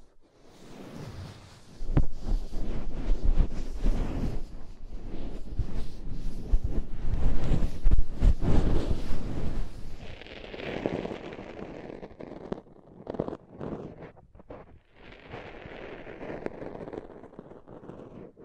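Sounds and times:
soft fluffy rubbing and brushing: 0.0s - 18.4s
crackly bursts: 9.9s - 18.4s.

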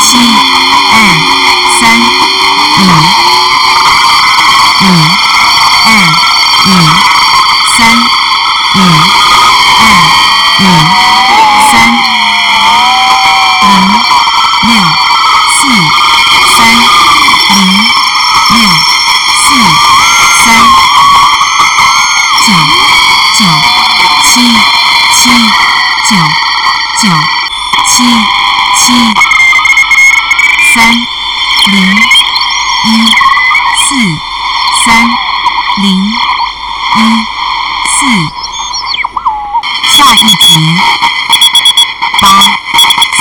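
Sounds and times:
wavering tone: 0.0s - 34.2s
low rapid pulsing: 0.0s - 43.1s
shortwave radio whining tones and hiss: 0.0s - 43.1s.

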